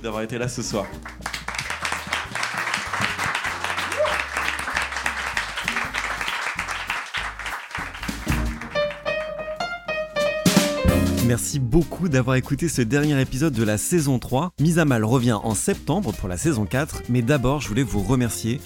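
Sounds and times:
speech: 0:00.0 - 0:01.3, 0:11.2 - 0:18.6
music: 0:00.0 - 0:18.6
audience applause: 0:00.8 - 0:09.4
scattered whoops: 0:03.7 - 0:04.6.

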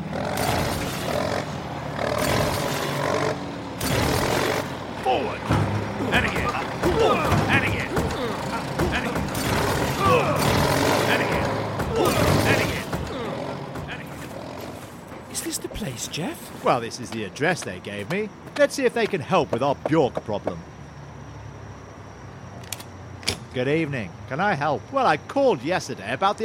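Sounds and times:
bulldozer driving up and ramming door: 0:00.1 - 0:14.8
speech: 0:16.7 - 0:20.7, 0:23.6 - 0:26.4.

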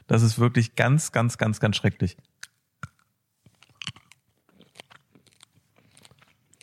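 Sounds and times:
speech: 0:00.1 - 0:02.3
chewing crunchy hard sugar pearls: 0:02.9 - 0:06.6.

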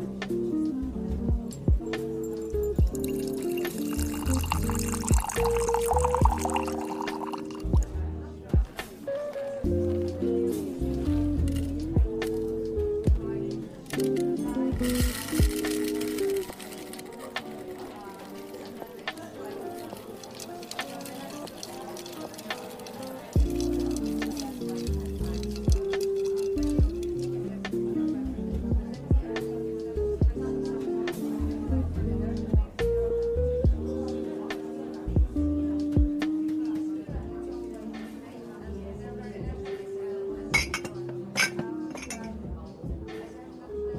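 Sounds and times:
murmur of overlapping voices in a coffee shop: 0:00.0 - 0:43.9
cups and dishes clinking: 0:02.1 - 0:07.8, 0:14.8 - 0:27.0, 0:40.5 - 0:42.4.

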